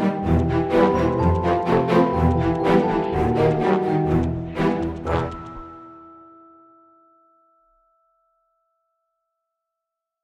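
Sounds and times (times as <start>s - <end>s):
funny horror music: 0.0s - 6.2s.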